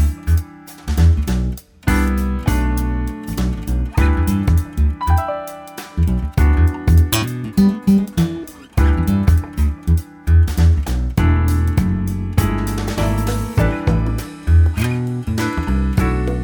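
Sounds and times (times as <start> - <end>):
jazz guitar: 0.0 - 16.4.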